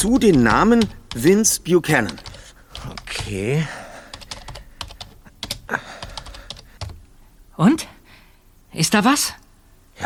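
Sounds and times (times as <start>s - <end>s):
speech: 0.0s - 3.8s, 7.6s - 7.9s, 8.7s - 9.4s
typing a search query on a computer keyboard: 0.0s - 7.0s.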